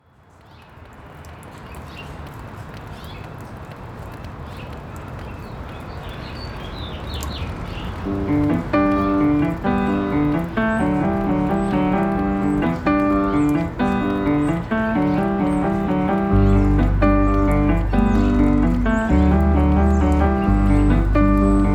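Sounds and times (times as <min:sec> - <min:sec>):
house finch singing: 0:08.1 - 0:21.7.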